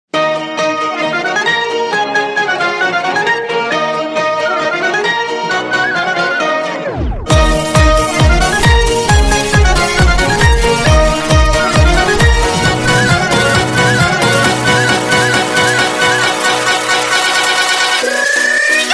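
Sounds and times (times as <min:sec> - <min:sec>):
instrumental music: 0:00.1 - 0:18.9.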